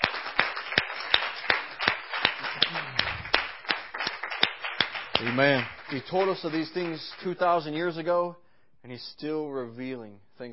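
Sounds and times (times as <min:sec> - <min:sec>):
audience clapping in rhythm in a large room: 0:00.0 - 0:08.0
speech: 0:05.2 - 0:10.5.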